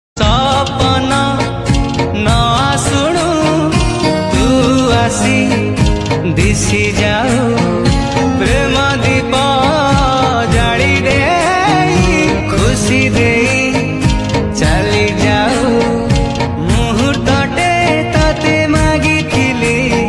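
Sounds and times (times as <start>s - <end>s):
Odia romantic songs: 0.2s - 20.0s.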